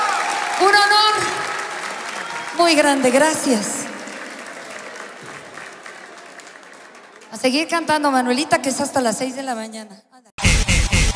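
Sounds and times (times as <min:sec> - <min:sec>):
audience applause: 0:00.0 - 0:07.7
speech: 0:00.6 - 0:01.4, 0:02.6 - 0:03.8, 0:07.4 - 0:10.1.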